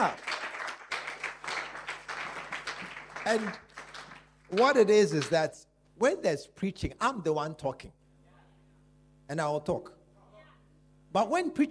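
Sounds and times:
speech: 0:00.0 - 0:00.2, 0:03.3 - 0:03.6, 0:04.5 - 0:08.0, 0:09.3 - 0:10.0, 0:11.1 - 0:11.7
congregation clapping rhythmically: 0:00.0 - 0:05.6.

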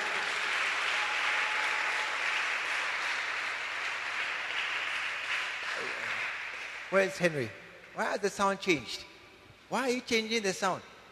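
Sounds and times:
audience clapping: 0:00.0 - 0:08.1
speech: 0:05.8 - 0:06.1, 0:06.9 - 0:09.1, 0:09.7 - 0:10.9.

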